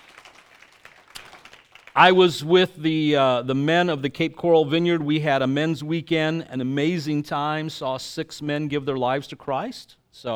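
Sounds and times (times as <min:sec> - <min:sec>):
audience clapping: 0:00.0 - 0:02.7
speech: 0:02.0 - 0:10.3.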